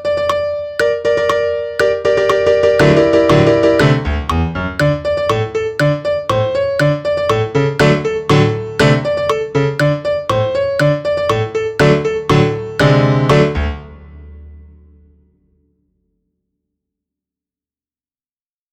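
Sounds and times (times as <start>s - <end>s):
polka piano: 0.0s - 14.8s.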